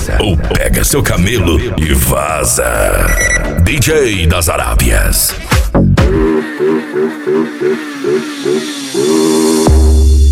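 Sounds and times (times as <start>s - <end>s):
speech: 0.2s - 5.5s, 6.1s - 10.0s
motorcycle engine revving: 6.0s - 10.2s.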